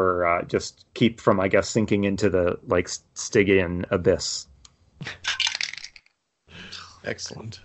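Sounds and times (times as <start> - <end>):
speech: 0.0 - 5.2, 7.0 - 7.6
dice being rolled: 5.2 - 6.2.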